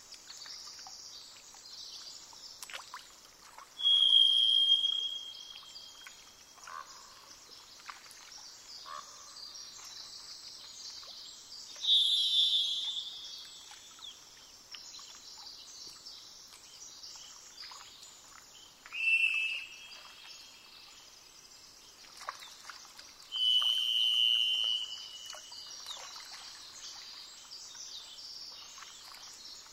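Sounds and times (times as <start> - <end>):
constant hiss: 0.0 - 29.7
varied thrush singing a long buzzy whistle: 3.8 - 5.7, 11.8 - 13.5, 18.9 - 20.4, 23.3 - 25.6.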